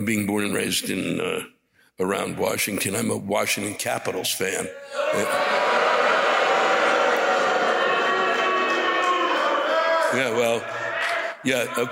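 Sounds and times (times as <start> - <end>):
speech: 0.0 - 5.8, 10.1 - 10.8, 11.4 - 11.9
crowd booing: 4.8 - 11.9.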